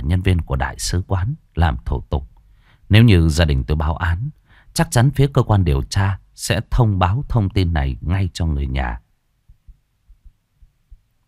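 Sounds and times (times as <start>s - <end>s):
speech: 0.1s - 2.3s, 2.9s - 9.0s
heartbeat sound effect of hard-pounding heart: 9.5s - 11.2s.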